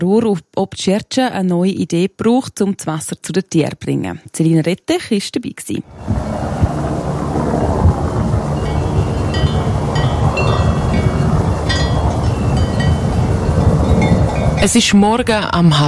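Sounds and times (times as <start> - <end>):
speech: 0.0 - 6.7, 14.6 - 15.8
helicopter flying over mountain pasture: 5.9 - 14.6.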